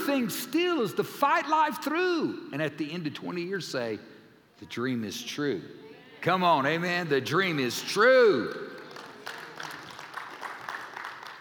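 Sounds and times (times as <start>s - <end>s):
speech: 0.1s - 8.7s
small audience golf clap: 8.3s - 11.4s.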